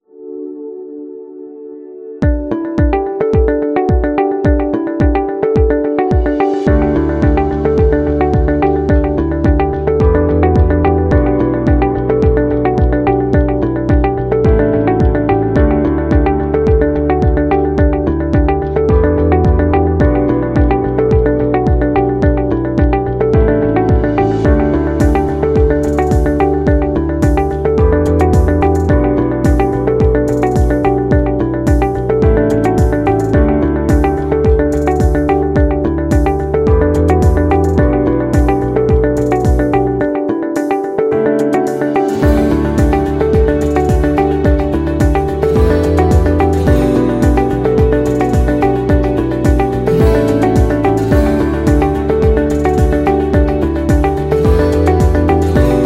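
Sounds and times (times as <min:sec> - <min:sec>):
soft corporate music: 0:00.1 - 0:55.8.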